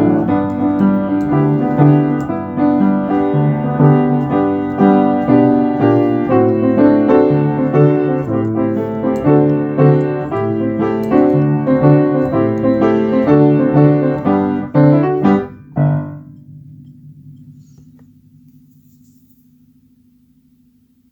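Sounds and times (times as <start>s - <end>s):
solo piano accompaniment at 120 bpm: 0.0s - 19.2s.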